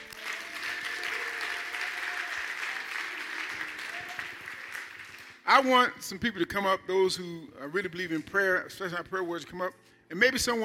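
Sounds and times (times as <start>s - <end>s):
crowd applause: 0.0s - 5.4s
speech: 5.5s - 10.6s.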